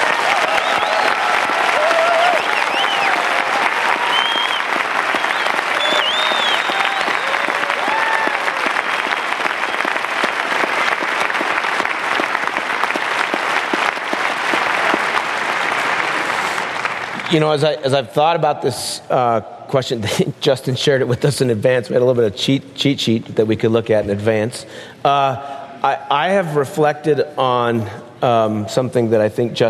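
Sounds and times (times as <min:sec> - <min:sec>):
audience applause: 0:00.0 - 0:17.7
speech: 0:17.3 - 0:29.6.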